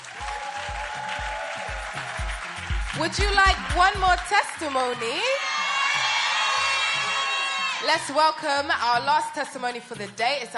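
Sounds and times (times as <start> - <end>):
audience clapping: 0.0 - 7.0
speech: 3.0 - 5.4, 7.8 - 10.5.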